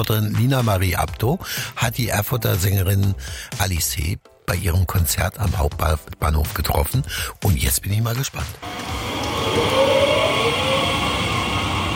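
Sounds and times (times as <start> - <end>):
speech: 0.0 - 9.8
railway carriages braking: 8.6 - 11.9.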